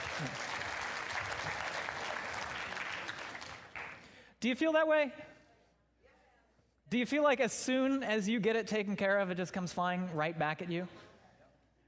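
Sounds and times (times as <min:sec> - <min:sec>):
audience round of applause: 0:00.0 - 0:04.1
speech: 0:00.2 - 0:00.5, 0:04.4 - 0:05.3, 0:06.9 - 0:11.1.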